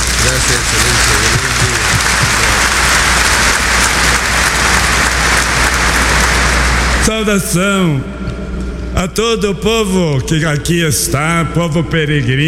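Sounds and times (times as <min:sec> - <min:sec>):
applause: 0:00.0 - 0:07.1
speech: 0:07.2 - 0:08.4, 0:09.0 - 0:12.4.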